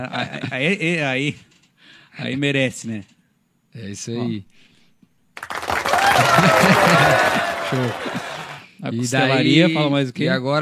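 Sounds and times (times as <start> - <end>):
speech: 0.0 - 1.5, 2.2 - 4.7, 6.2 - 10.6
short applause: 5.4 - 8.6
laughter: 5.9 - 8.6.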